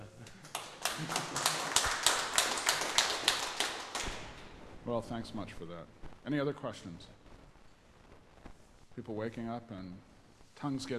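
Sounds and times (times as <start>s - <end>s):
audience applause: 0.4s - 4.5s
speech: 1.0s - 1.4s, 4.9s - 7.2s, 9.0s - 10.9s.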